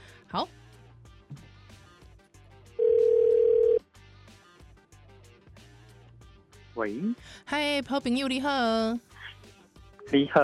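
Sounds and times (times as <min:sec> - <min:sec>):
soft rhythmic music bed: 0:00.0 - 0:03.8, 0:06.6 - 0:10.4
speech: 0:00.3 - 0:00.6, 0:06.8 - 0:09.1, 0:10.1 - 0:10.4
telephone dial tone: 0:02.8 - 0:03.8.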